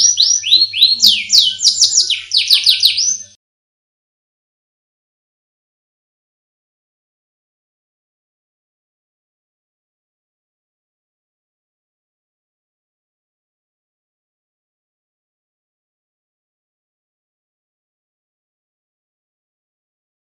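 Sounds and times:
canary singing: 0.0 - 3.4.

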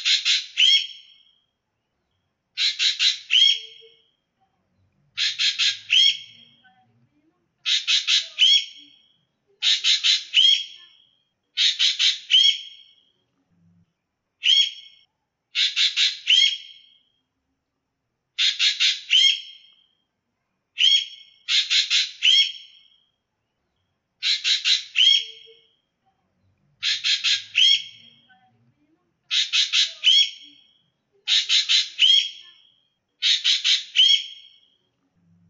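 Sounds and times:
ekek geling call variations: 0.0 - 1.5, 2.6 - 4.2, 5.2 - 6.6, 7.6 - 13.1, 14.4 - 17.2, 18.4 - 20.0, 20.8 - 23.2, 24.2 - 25.8, 26.8 - 28.3, 29.3 - 34.8.

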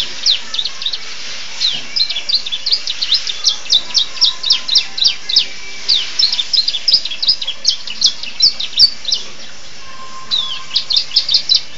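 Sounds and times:
Atlantic canary singing in the style of the bar-winged prinia: 0.0 - 11.7.

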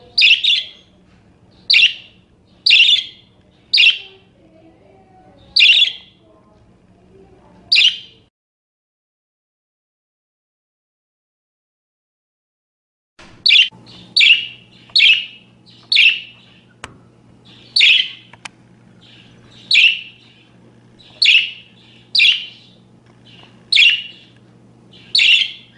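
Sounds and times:
parakeet giving sharp calls: 0.0 - 6.2, 7.7 - 8.3, 13.4 - 16.8, 17.4 - 25.7.

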